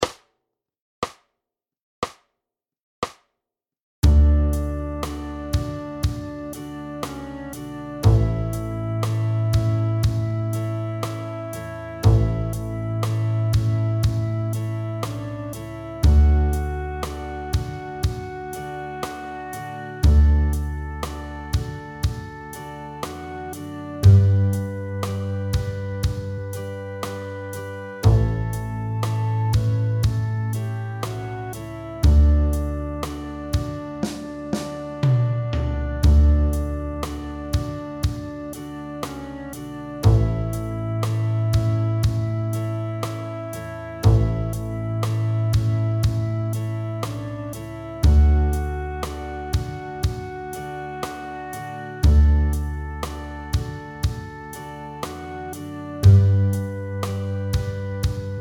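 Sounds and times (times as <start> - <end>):
double bass: 4.0 - 5.6, 6.5 - 21.6, 22.6 - 37.6, 39.0 - 49.6, 50.8 - 53.6, 55.1 - 58.4.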